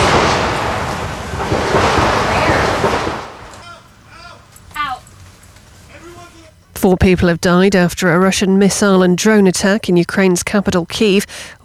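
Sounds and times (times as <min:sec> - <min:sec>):
gunshots: 0:00.0 - 0:04.5
speech: 0:06.8 - 0:11.6.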